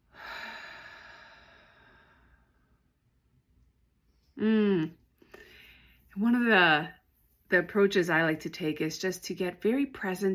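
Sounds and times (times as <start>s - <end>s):
deep breath in through the nose and out through the mouth: 0.0s - 2.8s, 5.2s - 6.1s
speech: 4.4s - 5.0s, 6.2s - 10.3s.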